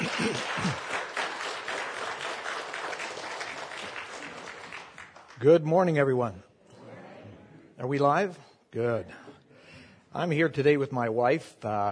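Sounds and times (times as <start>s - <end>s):
crowd applauding: 0.0s - 5.6s
speech: 5.4s - 6.5s, 7.8s - 9.3s, 10.1s - 11.9s
murmur of voices: 6.6s - 7.8s.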